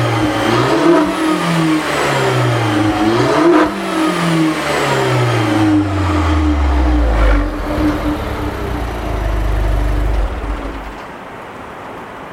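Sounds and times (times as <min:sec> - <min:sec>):
Giulietta muffler blip: 0:00.0 - 0:11.1.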